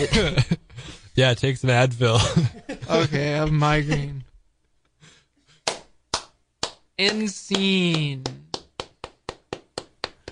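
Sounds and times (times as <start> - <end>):
speech: 0.0 - 0.6, 1.2 - 4.2, 7.0 - 8.4
single person clapping: 5.6 - 10.3.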